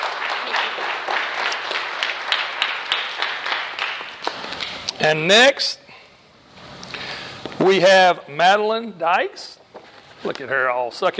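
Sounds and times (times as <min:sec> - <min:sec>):
audience applause: 0:00.0 - 0:04.6
speech: 0:05.0 - 0:05.8, 0:07.6 - 0:09.6, 0:10.2 - 0:11.1.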